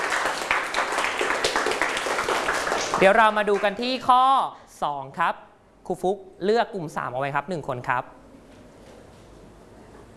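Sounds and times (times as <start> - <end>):
students in a classroom clapping for a classmate: 0.0 - 3.8
speech: 3.0 - 8.2.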